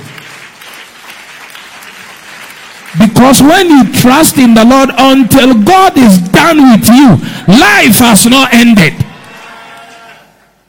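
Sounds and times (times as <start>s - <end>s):
congregation applause for Jesus during a sermon: 0.0s - 4.7s, 9.1s - 10.6s
speech: 3.2s - 9.0s.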